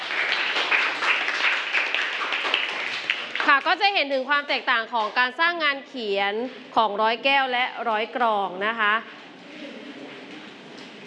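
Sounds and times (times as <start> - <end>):
audience applause: 0.0 - 3.6
speech: 3.6 - 9.2.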